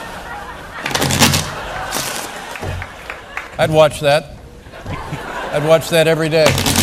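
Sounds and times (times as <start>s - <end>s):
laughter: 0.0s - 6.8s
playing cards being shuffled: 0.8s - 2.9s, 6.5s - 6.8s
speech: 3.6s - 4.3s, 5.5s - 6.7s.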